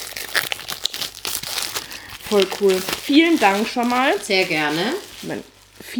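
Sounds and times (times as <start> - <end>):
crisp plastic foil wrapping crinkling: 0.0 - 5.9
speech: 2.3 - 5.9.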